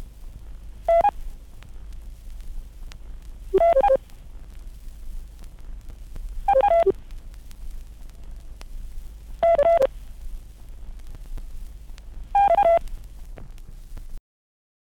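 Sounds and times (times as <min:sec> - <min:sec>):
compressed optophone tones: 0:03.6 - 0:04.0, 0:06.5 - 0:06.9, 0:09.4 - 0:09.9.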